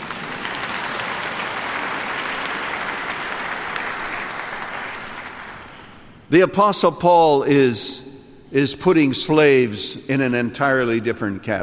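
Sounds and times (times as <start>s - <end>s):
audience applause: 0.0s - 6.1s
speech: 6.3s - 11.6s.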